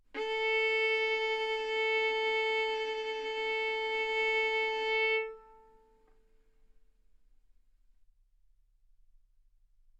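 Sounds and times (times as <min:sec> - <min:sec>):
violin arco on A string: 0:00.2 - 0:06.0.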